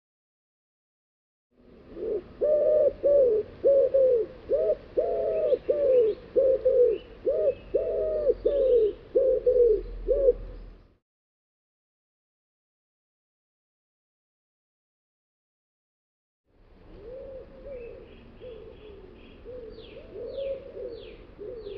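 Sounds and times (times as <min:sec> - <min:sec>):
bird giving low mellow cooing notes: 0:01.6 - 0:10.7, 0:16.8 - 0:21.7.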